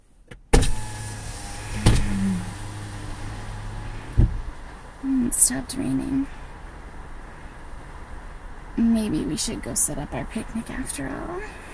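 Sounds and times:
mechanical clunks of car power windows: 0:00.3 - 0:03.2
car power windows whirring as they lower: 0:00.3 - 0:04.9
speech: 0:05.3 - 0:06.4, 0:08.8 - 0:11.6.

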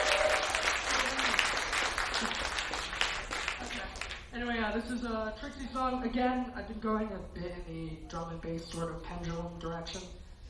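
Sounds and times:
crowd applauding: 0:00.0 - 0:04.3
speech: 0:04.8 - 0:10.2.

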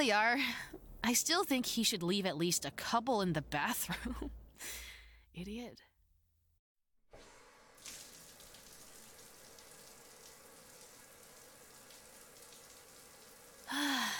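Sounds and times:
speech: 0:00.0 - 0:05.9, 0:13.7 - 0:14.1
shower water running: 0:07.2 - 0:14.1.

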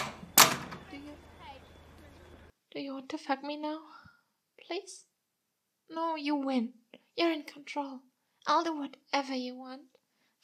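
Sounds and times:
door opening clack: 0:00.0 - 0:01.2
low hum: 0:00.0 - 0:02.5
speech: 0:02.8 - 0:04.1, 0:04.7 - 0:05.1, 0:05.9 - 0:10.4.

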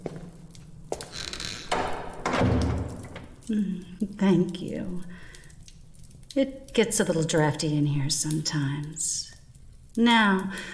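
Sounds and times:
door creaking with a thin squeaky hinge: 0:01.0 - 0:03.4
door shutting with a heavy low thud: 0:01.7 - 0:03.3
speech: 0:03.5 - 0:05.2, 0:06.4 - 0:09.3, 0:10.0 - 0:10.7.

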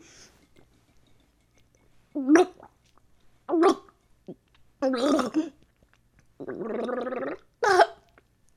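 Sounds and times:
person gargling a mouthful of liquid: 0:02.2 - 0:02.8, 0:03.5 - 0:05.5, 0:06.4 - 0:07.9.

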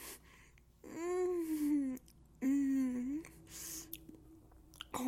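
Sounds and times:
moaning: 0:00.8 - 0:05.0.

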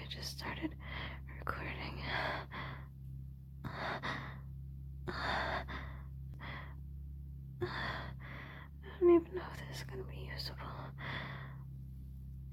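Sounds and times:
steady low hum: 0:00.0 - 0:12.5
speech: 0:00.6 - 0:00.9, 0:09.6 - 0:11.2
heavy breathing into the microphone: 0:02.0 - 0:02.9, 0:03.6 - 0:04.5, 0:05.1 - 0:06.8, 0:07.6 - 0:08.8, 0:10.8 - 0:11.7.

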